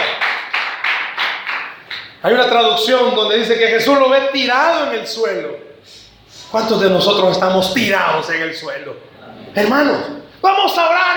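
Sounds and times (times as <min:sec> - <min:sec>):
audience applauding: 0:00.0 - 0:02.2
speech: 0:02.2 - 0:11.1.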